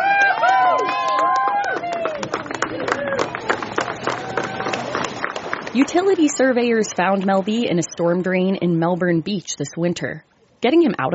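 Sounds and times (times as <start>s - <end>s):
voices cheering and whooping: 0.0s - 5.1s
large outdoor crowd clapping: 0.0s - 7.4s
speech: 5.8s - 11.1s.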